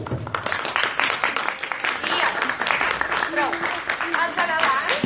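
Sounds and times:
loud audience applause: 0:00.2 - 0:04.9.

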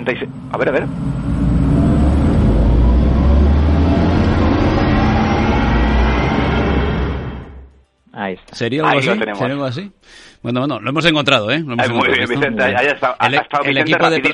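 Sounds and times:
speech: 0:00.0 - 0:01.5, 0:08.2 - 0:14.3
electric sports car driving past: 0:00.0 - 0:07.9.

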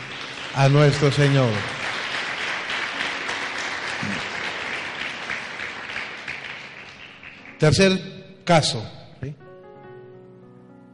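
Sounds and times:
audience applause: 0:00.0 - 0:07.8
speech: 0:00.5 - 0:01.8, 0:07.6 - 0:09.4.

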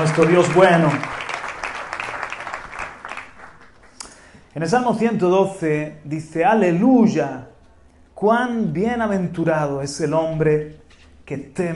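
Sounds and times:
audience applause: 0:00.0 - 0:04.0
speech: 0:00.1 - 0:01.2, 0:04.6 - 0:07.5, 0:08.2 - 0:11.7.

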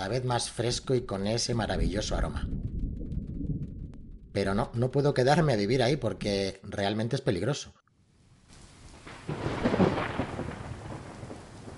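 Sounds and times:
speech: 0:00.0 - 0:02.6, 0:04.4 - 0:07.8
loud thunderclap in a rainstorm: 0:01.6 - 0:04.4, 0:08.8 - 0:11.7.

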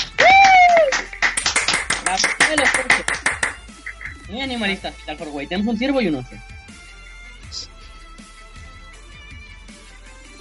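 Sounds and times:
applause, hands clapping: 0:00.0 - 0:04.3
speech: 0:02.2 - 0:03.2, 0:04.3 - 0:06.5.

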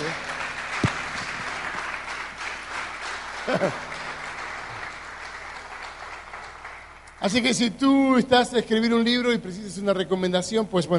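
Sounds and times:
audience applause: 0:00.0 - 0:07.3
speech: 0:03.4 - 0:03.9, 0:07.2 - 0:10.9
laughter: 0:03.4 - 0:04.0.

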